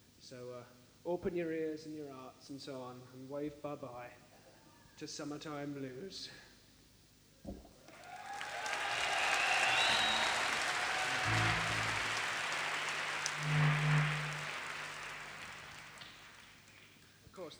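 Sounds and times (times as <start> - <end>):
speech: 0.3 - 4.3, 5.0 - 6.5
concert audience applause: 7.9 - 17.0.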